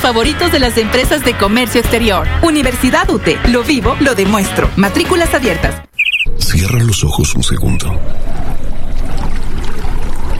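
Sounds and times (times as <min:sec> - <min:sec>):
speech: 0:00.0 - 0:05.8, 0:06.4 - 0:09.2
flowing water: 0:07.9 - 0:10.3.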